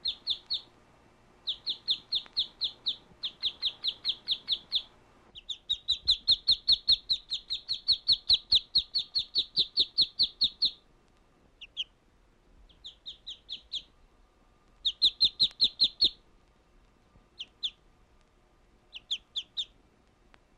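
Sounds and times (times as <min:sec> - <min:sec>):
duck peeping with thin high downslurred notes: 0:00.0 - 0:00.8, 0:01.4 - 0:10.8, 0:11.6 - 0:12.0, 0:12.6 - 0:14.0, 0:14.8 - 0:16.2, 0:17.4 - 0:17.8, 0:18.9 - 0:19.8.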